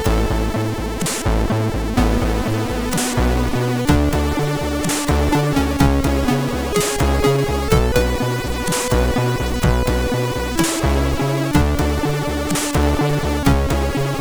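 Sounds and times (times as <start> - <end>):
MOS6581R3 SID chip tune: 0.0 - 14.2.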